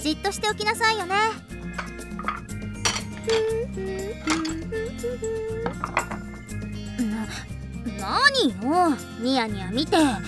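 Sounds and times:
speech: 0.0 - 2.4, 3.2 - 6.2, 7.1 - 10.2
plates being cleared and stacked: 1.8 - 3.5, 4.3 - 4.6, 5.6 - 6.4.

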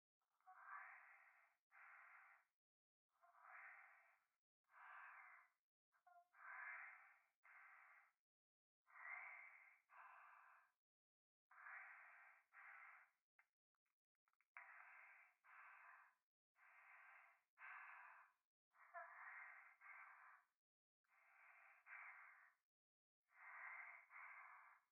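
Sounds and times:
breathing pressed against the right ear in a bath: 0.8 - 2.5, 3.5 - 5.6, 6.4 - 8.2, 8.9 - 10.8, 11.5 - 13.2, 14.6 - 22.6, 23.3 - 24.8.

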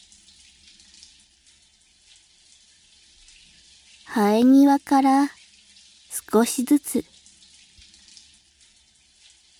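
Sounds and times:
hot water running through hair rinsing out shampoo foam: 4.1 - 5.4, 6.1 - 8.3
speech: 4.1 - 5.4, 6.2 - 7.1.

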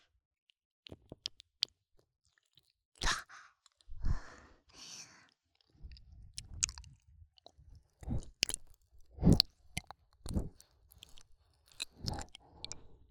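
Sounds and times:
soft biting sounds: 0.8 - 3.9, 5.5 - 12.9
ear licking sounds: 0.9 - 1.7, 5.6 - 12.9.

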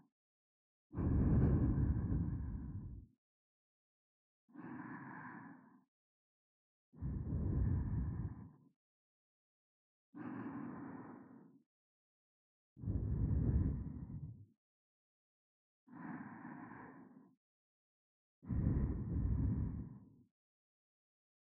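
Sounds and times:
sleeping breathing: 1.0 - 3.0, 4.6 - 5.8, 7.0 - 8.4, 10.2 - 11.5, 12.8 - 14.3, 18.5 - 19.9.

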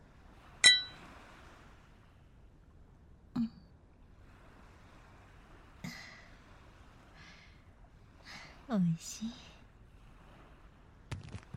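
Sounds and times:
glasses clinking in a toast: 0.6 - 1.0
speech: 8.7 - 9.5.

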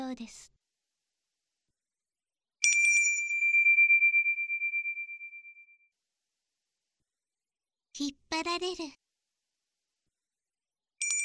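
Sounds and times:
speech: 0.1 - 0.6, 8.0 - 9.0
small bell ringing: 2.6 - 5.9, 11.0 - 11.2.

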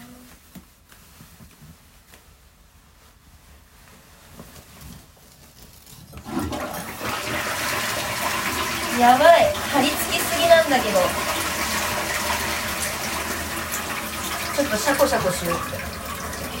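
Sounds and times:
faint low rustling: 0.0 - 6.3
toilet flushing: 6.2 - 16.5
speech: 9.0 - 11.3, 14.6 - 15.9.

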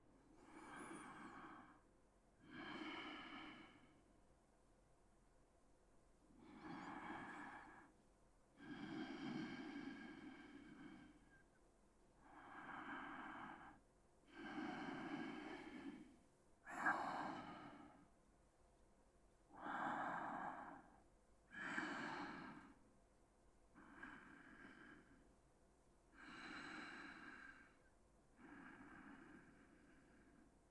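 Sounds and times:
person breathing in sleep: 0.4 - 4.0, 6.4 - 8.0, 8.6 - 11.4, 12.2 - 18.2, 19.5 - 22.8, 23.8 - 25.3, 26.1 - 30.6.

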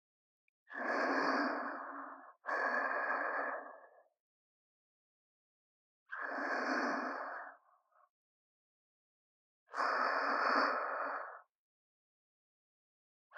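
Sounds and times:
person breathing in sleep: 0.7 - 4.1, 6.1 - 8.0, 9.7 - 11.5.

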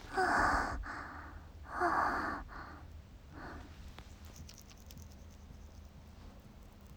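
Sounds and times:
female university student masturbating: 0.1 - 2.4.

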